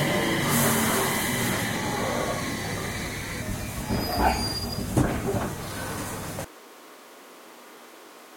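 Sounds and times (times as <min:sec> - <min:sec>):
701 IGBT traction motor stopping: 0:00.0 - 0:06.5.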